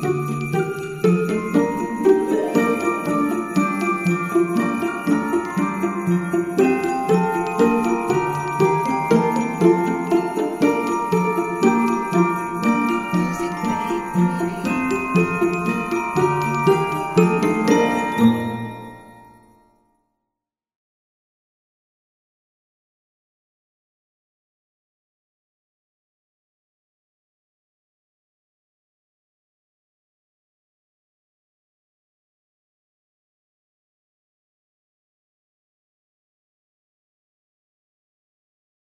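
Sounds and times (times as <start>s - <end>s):
orchestral Christmas piece: 0.0s - 19.5s.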